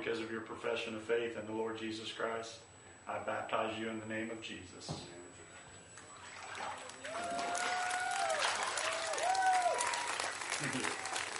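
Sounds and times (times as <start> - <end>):
speech: 0.0 - 5.4, 10.6 - 10.9
audience cheering and clapping after a baptism: 6.8 - 11.3
excited voices and whoops: 7.0 - 10.4.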